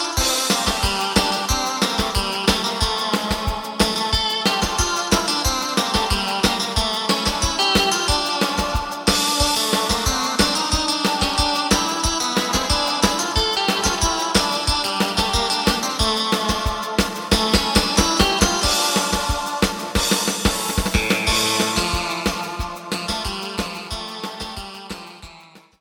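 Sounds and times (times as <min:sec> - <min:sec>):
bass: 0:00.2 - 0:25.7.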